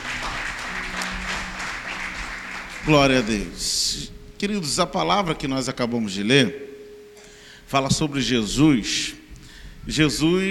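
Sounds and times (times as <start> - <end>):
audience applause: 0.0 - 3.8
speech: 2.8 - 6.7, 7.7 - 9.2, 9.8 - 10.5.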